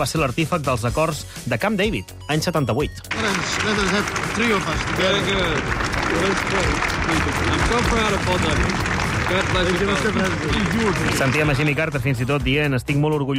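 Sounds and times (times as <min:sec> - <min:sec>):
speech: 0:00.0 - 0:13.3
applause: 0:03.1 - 0:12.2.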